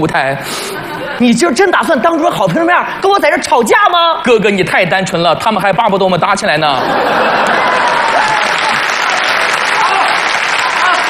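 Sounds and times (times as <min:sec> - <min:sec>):
speech: 0:00.0 - 0:07.6
laughter: 0:00.5 - 0:01.4, 0:06.7 - 0:08.9
audience applause: 0:07.0 - 0:11.0.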